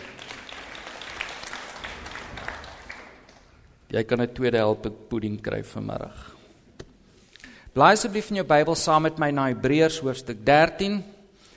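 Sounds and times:
audience applause: 0.0 - 3.5
speech: 3.9 - 6.4, 7.8 - 11.2.

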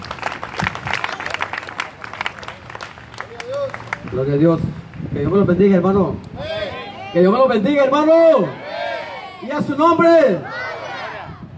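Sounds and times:
audience applause: 0.0 - 4.2
speech: 4.1 - 6.3, 7.1 - 8.6, 9.4 - 10.5.

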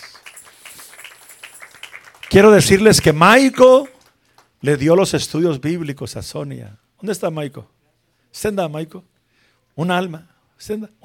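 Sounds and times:
audience applauding: 0.0 - 4.6
speech: 2.3 - 3.9, 4.6 - 9.1, 9.8 - 11.0.

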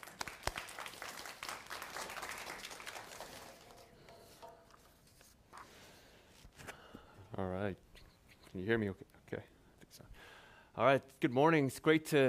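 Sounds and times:
audience round of applause: 0.0 - 4.1
speech: 7.4 - 7.8, 8.5 - 9.5, 10.8 - 12.2.

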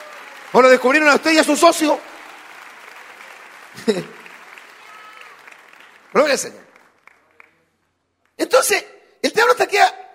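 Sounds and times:
audience applause: 0.0 - 7.7
speech: 0.5 - 2.1, 3.8 - 4.2, 6.2 - 6.6, 8.4 - 10.0
laughter: 3.7 - 4.4.

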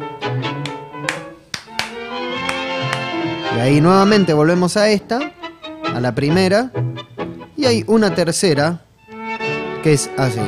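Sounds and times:
hand clapping a tango rhythm: 0.5 - 3.4
speech: 3.6 - 5.4, 6.0 - 7.0, 7.6 - 8.8, 9.8 - 10.4.

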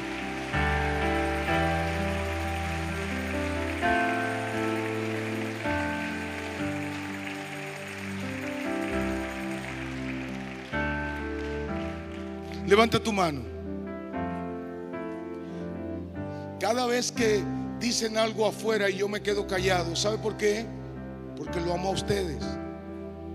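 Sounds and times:
audience applause: 0.0 - 12.9
keyboard or organ accompaniment: 0.0 - 23.3
speech: 12.7 - 13.5, 16.7 - 20.8, 21.4 - 22.6.

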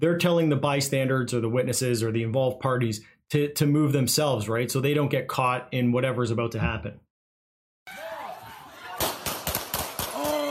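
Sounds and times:
speech: 0.0 - 7.0
police officers firing gunshots: 9.0 - 10.4.

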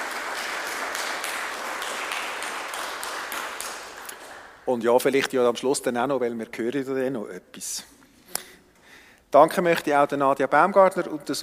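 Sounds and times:
applause in a church after a euphonium and organ performance: 0.0 - 4.6
speech: 4.7 - 8.0, 9.3 - 11.4.

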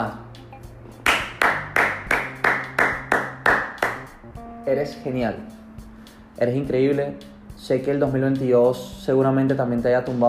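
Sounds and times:
speech: 0.0 - 0.2, 4.7 - 5.6, 6.4 - 10.2
hand claps: 1.0 - 4.2.

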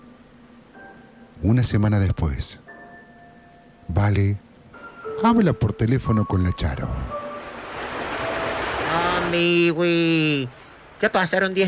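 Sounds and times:
speech: 1.4 - 2.6, 3.9 - 4.5, 5.2 - 7.2, 9.3 - 11.6
heavy rain: 7.4 - 9.6.

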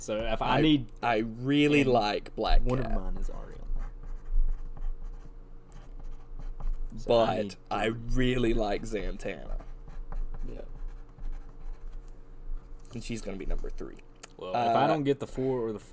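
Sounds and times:
speech: 0.0 - 3.6, 6.9 - 9.6, 12.9 - 15.9
pen scratching on paper writing a list: 3.6 - 6.9, 9.4 - 12.0.

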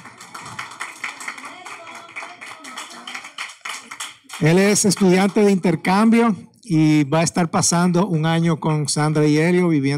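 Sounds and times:
audience applause: 0.0 - 5.6
speech: 4.4 - 9.9.

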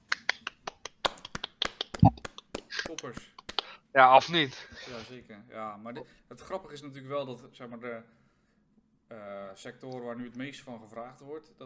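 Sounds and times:
crowd hand clapping: 0.0 - 3.7
speech: 2.9 - 8.2, 9.1 - 11.6.

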